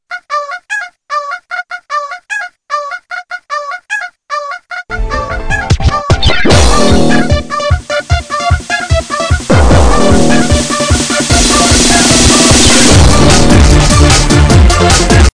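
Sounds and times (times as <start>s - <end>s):
notification sound remix: 5.0s - 15.3s.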